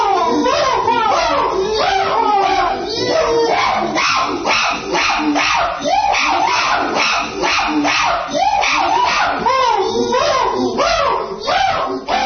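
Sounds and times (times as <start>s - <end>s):
chimpanzees at a zoo hooting and shrieking: 0.0s - 12.2s.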